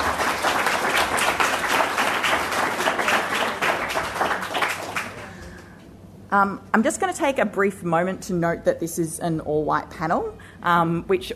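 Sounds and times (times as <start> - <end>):
round of applause: 0.0 - 5.8
speech: 6.3 - 11.3.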